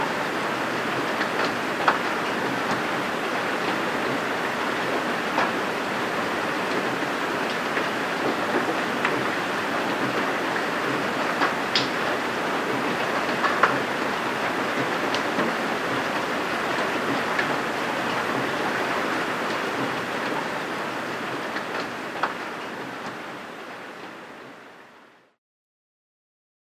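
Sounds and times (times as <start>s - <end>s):
rain: 0.0s - 25.4s.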